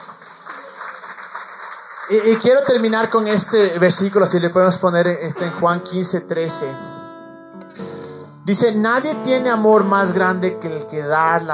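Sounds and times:
audience applause: 0.0 - 5.5
speech: 2.1 - 7.0, 8.5 - 11.5.

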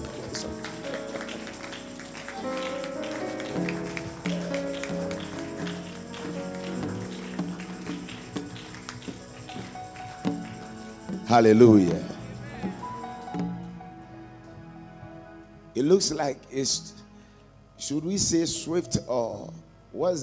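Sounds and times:
group clapping hands rhythmically: 0.0 - 13.7
sustained keyboard chords: 0.0 - 16.7
speech: 11.3 - 12.0, 15.9 - 17.0, 17.9 - 20.2.

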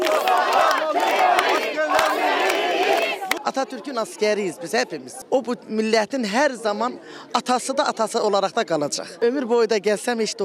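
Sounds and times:
sharp claps: 0.0 - 3.4
crowd chanting slogans: 0.0 - 3.9
speech: 3.5 - 10.4.

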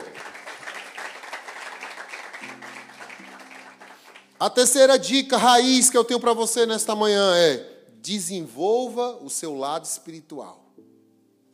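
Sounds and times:
audience applause: 0.0 - 4.4
speech: 4.4 - 10.6.

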